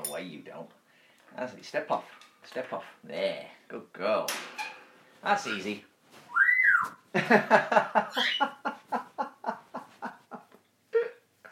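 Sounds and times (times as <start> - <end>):
speech: 0.2 - 5.9, 6.8 - 8.6
pet bird whistling: 6.3 - 7.0
pet bird chuckling pulses: 8.0 - 8.7.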